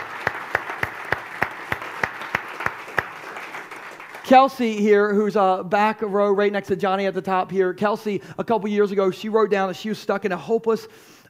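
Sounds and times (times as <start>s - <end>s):
audience applause: 0.0s - 4.5s
speech: 4.3s - 11.2s.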